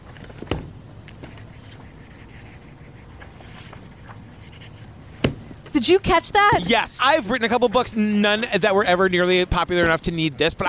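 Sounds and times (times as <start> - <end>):
pen signing books: 1.3 - 4.9
speech: 5.8 - 10.6.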